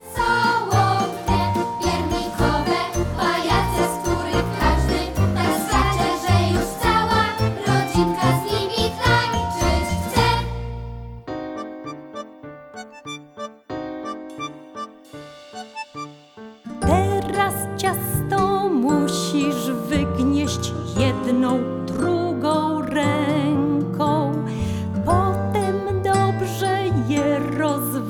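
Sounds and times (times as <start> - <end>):
vocal version of music: 0.0 - 10.8, 16.8 - 28.0.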